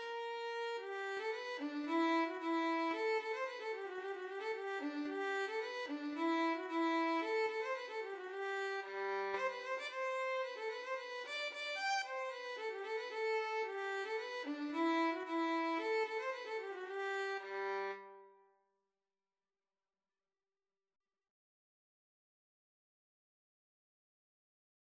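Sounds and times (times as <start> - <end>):
violin and cello duet: 0.0 - 18.0.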